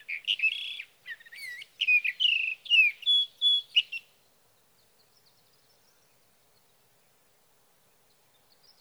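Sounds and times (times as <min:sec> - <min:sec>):
sage thrasher singing: 0:00.0 - 0:04.0.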